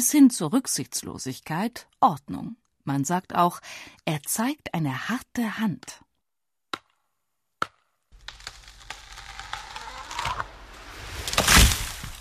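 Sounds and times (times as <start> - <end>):
speech: 0.0 - 6.0
axe chopping wood: 6.7 - 7.0, 7.6 - 10.5, 11.2 - 12.2
wood creaking and crackling into splintering crash: 8.2 - 12.2.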